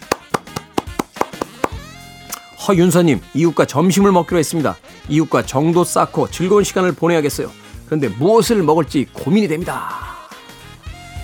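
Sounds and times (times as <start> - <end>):
host clapping hands in applause: 0.0 - 2.5
speech: 2.6 - 10.1.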